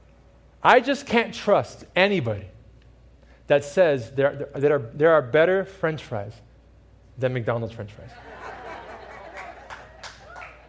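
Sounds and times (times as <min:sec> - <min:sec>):
speech: 0:00.6 - 0:02.5, 0:03.5 - 0:06.5, 0:07.2 - 0:08.4
laughter: 0:08.1 - 0:10.5
audience clapping: 0:09.1 - 0:10.6.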